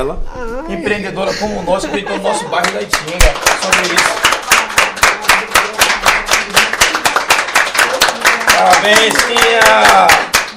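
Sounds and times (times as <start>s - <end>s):
speech: 0.0s - 4.4s, 8.6s - 10.3s
round of applause: 2.6s - 10.5s.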